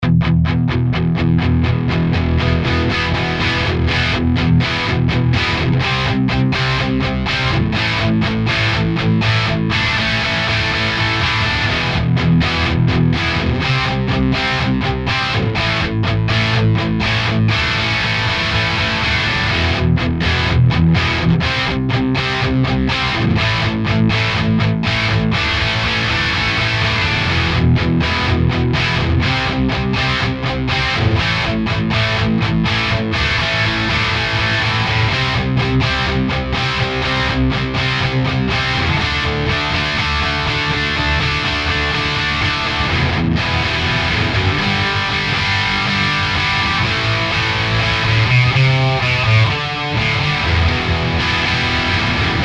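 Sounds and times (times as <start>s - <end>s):
crunch guitar tone on Ceriatone Yeti 50 amplifier: 0.0s - 52.4s.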